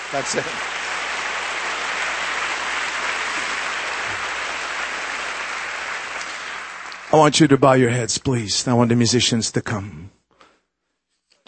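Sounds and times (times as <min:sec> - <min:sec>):
audience clapping: 0:00.0 - 0:08.1
speech: 0:00.1 - 0:00.8, 0:07.1 - 0:10.2.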